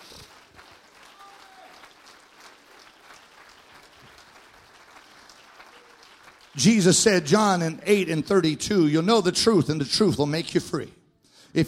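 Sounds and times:
audience clapping: 0.0s - 8.2s
speech: 6.6s - 11.0s.

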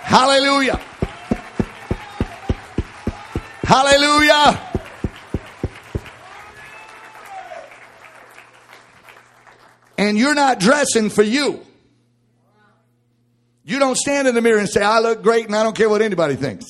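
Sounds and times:
audience clapping hands: 0.0s - 10.0s
speech: 0.1s - 0.9s, 3.7s - 4.7s, 10.0s - 11.7s, 13.7s - 16.6s.

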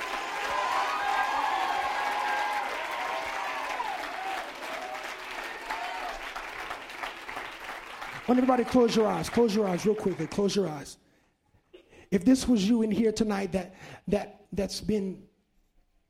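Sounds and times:
audience clapping in praise: 0.0s - 10.9s
speech: 8.3s - 11.0s, 12.1s - 15.3s.

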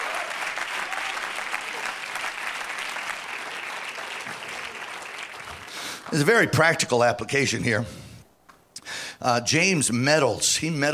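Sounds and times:
audience clapping hands: 0.0s - 6.9s
speech: 6.1s - 8.0s, 9.2s - 10.9s.

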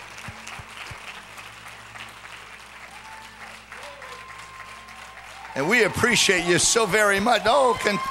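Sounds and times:
people clapping: 0.0s - 8.0s
speech: 5.6s - 8.0s.

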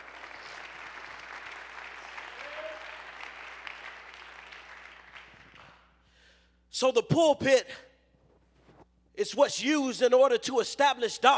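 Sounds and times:
audience clapping hands: 0.0s - 6.0s
speech: 6.8s - 7.9s, 9.2s - 11.3s.

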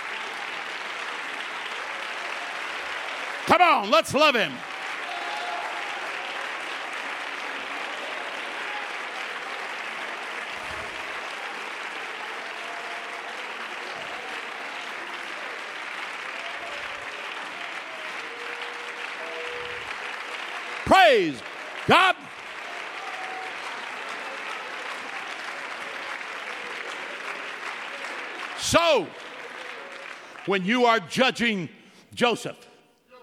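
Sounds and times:
audience clapping hands in praise: 0.0s - 32.4s
man calling out: 3.4s - 4.6s, 20.8s - 22.3s, 28.6s - 29.1s, 30.4s - 33.2s
speech: 3.5s - 4.7s, 21.0s - 22.1s, 28.8s - 29.3s, 30.4s - 32.6s.

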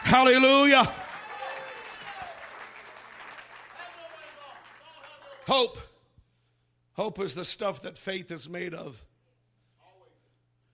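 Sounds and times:
audience clapping hands: 0.0s - 5.6s
speech: 0.1s - 1.0s, 5.5s - 5.9s, 7.0s - 9.1s.

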